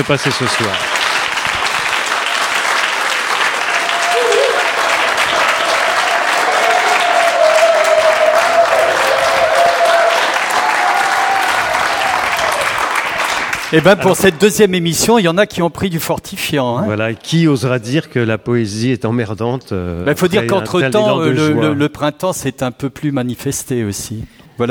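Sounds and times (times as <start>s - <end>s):
speech: 0.0s - 1.0s, 13.7s - 24.7s
audience applause: 0.0s - 14.4s
brief whistle-like tone: 4.1s - 4.7s.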